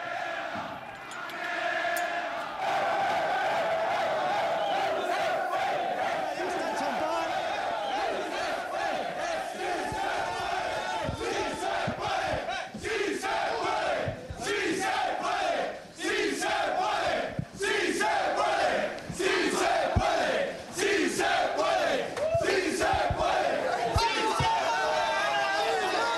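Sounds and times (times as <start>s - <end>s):
Alcorcón football players singing in the locker room corridor: 0.0s - 6.5s, 7.3s - 26.1s
football players shouting and chattering: 0.0s - 15.5s, 16.2s - 26.1s.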